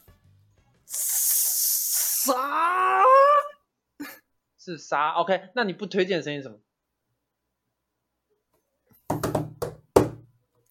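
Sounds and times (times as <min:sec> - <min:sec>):
speech: 0:02.3 - 0:02.9, 0:04.7 - 0:06.7
knocking: 0:09.1 - 0:10.3.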